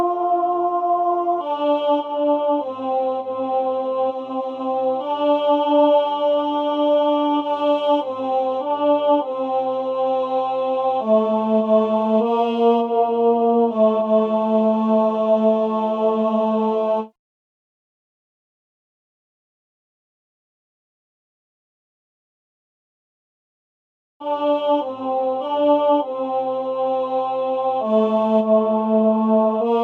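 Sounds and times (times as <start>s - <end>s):
tenor singing: 0.0s - 17.1s, 24.2s - 29.8s.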